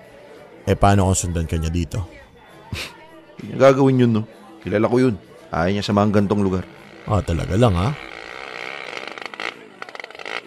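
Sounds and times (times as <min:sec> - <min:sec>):
speech: 0:00.7 - 0:08.1
motorized tricycle arriving with buzzing engine: 0:06.7 - 0:10.4.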